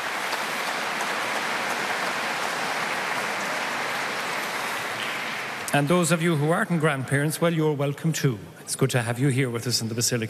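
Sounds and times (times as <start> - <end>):
audience applause: 0.0 - 5.9
speech: 5.7 - 10.2.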